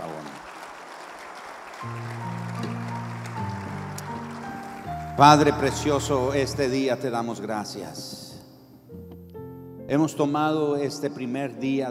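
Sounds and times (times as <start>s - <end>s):
audience clapping: 0.0s - 6.7s
speech: 1.8s - 2.3s, 5.2s - 8.2s, 9.9s - 11.8s
sustained keyboard or organ chords: 1.8s - 11.3s.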